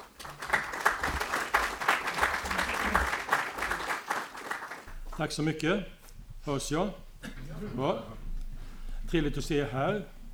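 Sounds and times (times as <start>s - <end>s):
warm audience applause: 0.0s - 4.9s
speech: 5.2s - 8.2s, 9.1s - 10.2s.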